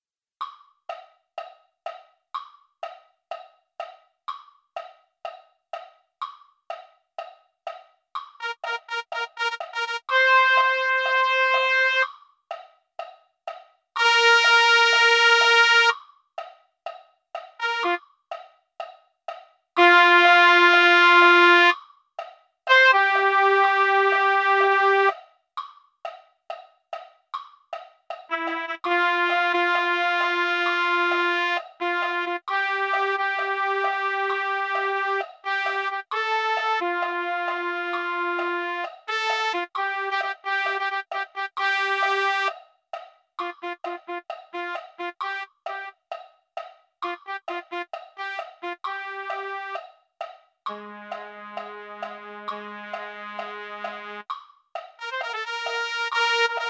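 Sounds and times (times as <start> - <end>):
trumpet: 8.4 - 12.0, 14.0 - 16.0, 17.6 - 18.0, 19.8 - 21.7, 22.7 - 25.1, 28.3 - 42.6, 43.4 - 45.9, 47.0 - 49.8, 50.7 - 54.2, 55.0 - 56.6.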